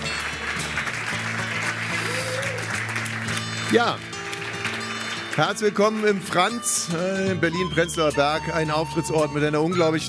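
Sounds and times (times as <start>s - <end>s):
audience applause: 0.0s - 6.6s
speech: 3.7s - 4.1s, 5.4s - 10.0s.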